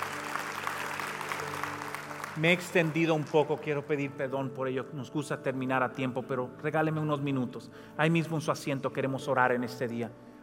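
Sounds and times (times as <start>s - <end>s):
audience clapping: 0.0s - 4.2s
speech: 2.4s - 10.3s.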